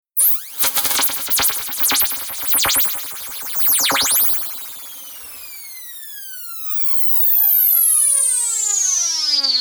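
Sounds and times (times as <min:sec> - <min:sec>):
long radio whizz down: 0:00.2 - 0:05.7
computer interface telemetry static: 0:00.2 - 0:05.8.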